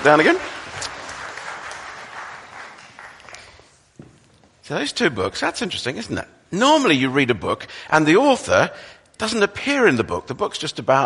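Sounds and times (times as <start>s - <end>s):
speech: 0.0s - 0.5s, 4.7s - 11.0s
round of applause for helpers: 0.0s - 3.8s.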